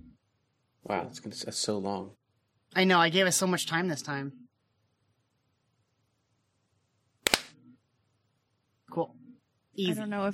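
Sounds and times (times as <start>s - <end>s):
speech: 0.8s - 4.5s, 9.0s - 9.2s, 9.8s - 10.3s
hand clap to sync recordings: 7.2s - 7.5s.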